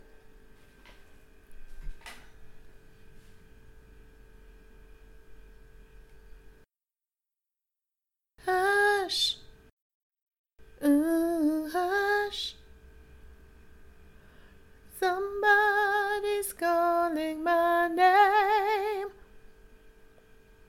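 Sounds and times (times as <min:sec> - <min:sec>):
soprano singing: 0:08.4 - 0:09.4, 0:10.8 - 0:12.6, 0:14.9 - 0:19.2.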